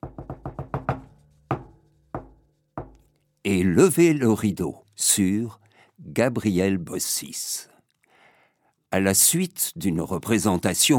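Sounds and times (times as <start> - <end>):
theatre knocks before the curtain rises: 0.0 - 3.1
speech: 3.4 - 7.7, 8.9 - 10.9.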